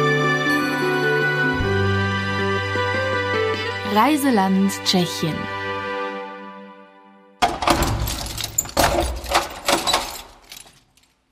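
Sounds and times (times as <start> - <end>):
held musical chord: 0.0 - 7.3
speech: 4.0 - 5.6
key unlocking a church door: 7.7 - 11.2.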